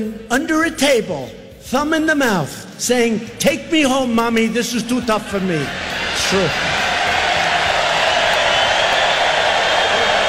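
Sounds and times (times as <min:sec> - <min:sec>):
speech: 0:00.0 - 0:06.8
rally crowd cheering: 0:05.2 - 0:10.2.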